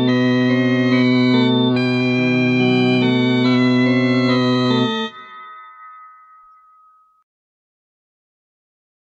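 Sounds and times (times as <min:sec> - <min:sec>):
baroque music: 0:00.0 - 0:05.4.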